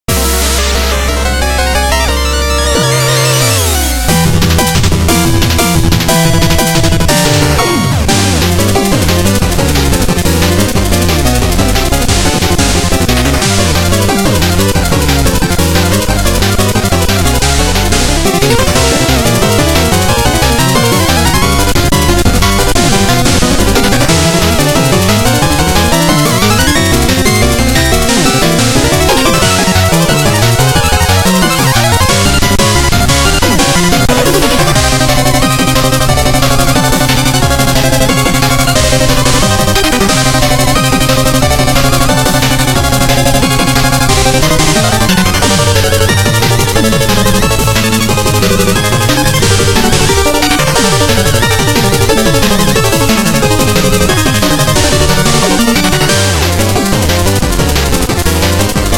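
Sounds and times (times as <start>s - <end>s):
boss battle music: 0.1s - 58.9s.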